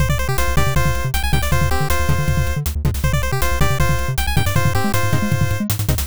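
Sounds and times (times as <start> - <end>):
background music: 0.0 - 6.0.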